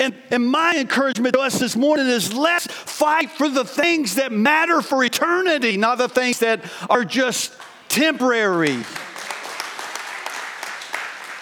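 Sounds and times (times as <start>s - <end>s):
speech: 0.0s - 9.0s
audience applauding: 8.6s - 11.3s.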